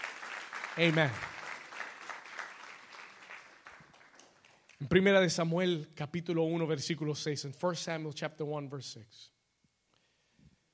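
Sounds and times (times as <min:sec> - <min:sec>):
audience applauding: 0:00.0 - 0:05.0
speech: 0:00.8 - 0:01.3, 0:04.9 - 0:09.4.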